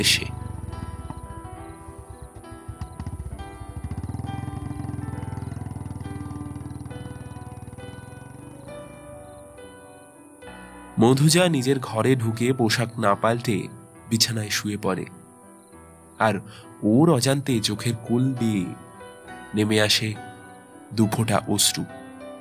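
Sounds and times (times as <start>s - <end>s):
speech: 0.0s - 0.4s, 11.0s - 15.2s, 16.2s - 18.8s, 19.5s - 20.3s, 20.9s - 22.0s
motorbike engine starting and riding away: 0.0s - 9.4s.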